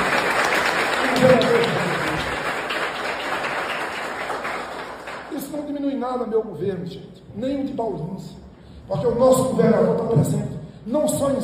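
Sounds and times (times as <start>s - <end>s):
audience applause: 0.0s - 5.3s
speech: 6.0s - 11.4s.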